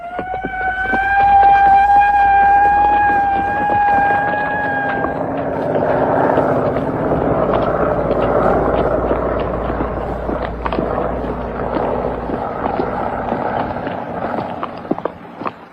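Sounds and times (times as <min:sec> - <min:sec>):
prison alarm siren sounded because prisoners escaped: 0:00.0 - 0:08.4
rough rumbling wash of noise: 0:00.0 - 0:15.7.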